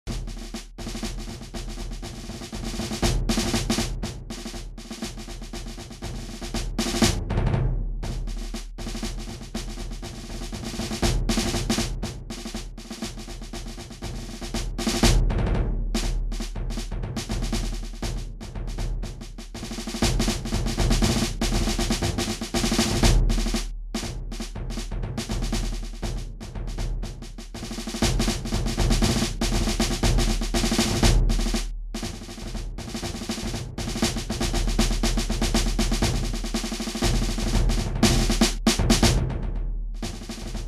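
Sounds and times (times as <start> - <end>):
large drums: 0.1 - 40.6.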